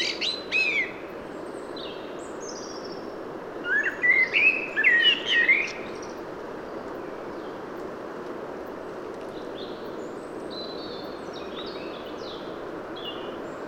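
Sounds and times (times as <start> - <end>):
common blackbird Turdus merula singing: 0.0 - 1.0, 3.7 - 6.0.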